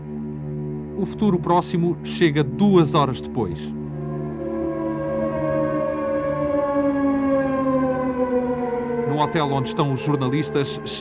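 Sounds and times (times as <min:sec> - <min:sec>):
air raid siren wailing: 0:00.0 - 0:02.4, 0:03.1 - 0:10.9
speech: 0:01.0 - 0:03.8, 0:09.2 - 0:10.9.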